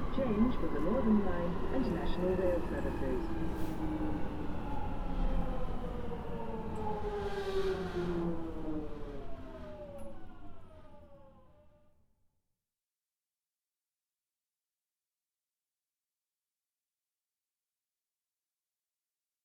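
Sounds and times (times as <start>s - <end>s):
tube train arriving into station: 0.0s - 10.8s.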